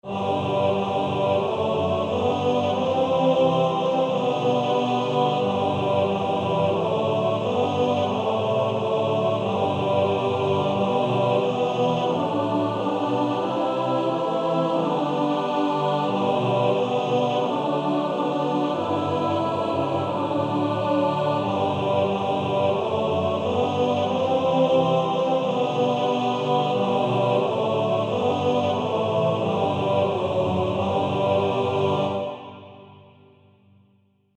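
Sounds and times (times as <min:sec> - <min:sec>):
male choir singing in four parts: 0:00.0 - 0:32.9.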